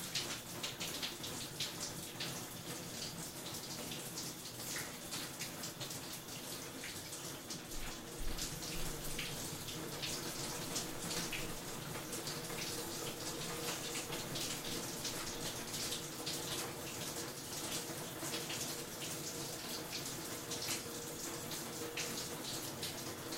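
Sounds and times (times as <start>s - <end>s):
shower running in a bathroom: 0.0s - 23.3s.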